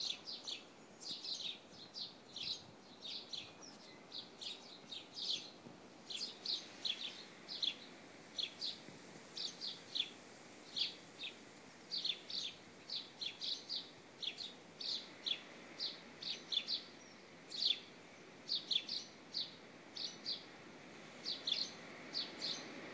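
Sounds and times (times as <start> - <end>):
baby sparrows cheeping: 0.0 - 22.9.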